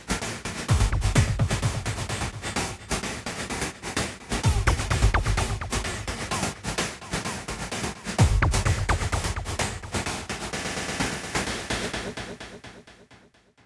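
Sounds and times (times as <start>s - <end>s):
simple drum loop: 0.6s - 3.2s, 4.2s - 6.9s, 7.5s - 13.1s.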